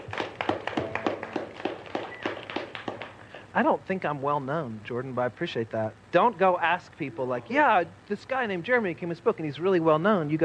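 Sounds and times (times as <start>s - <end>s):
audience round of applause: 0.0s - 3.5s
speech: 3.6s - 10.4s.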